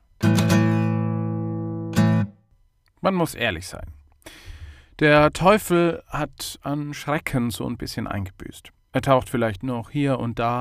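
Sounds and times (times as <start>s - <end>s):
short guitar intro: 0.2s - 2.4s
speech: 3.0s - 4.0s, 5.0s - 10.5s.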